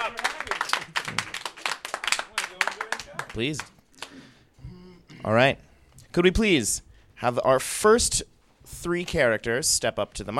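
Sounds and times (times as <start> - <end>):
scattered claps for an improviser at a live improv comedy show: 0.0 - 4.2
speech: 3.4 - 4.2, 5.2 - 10.3.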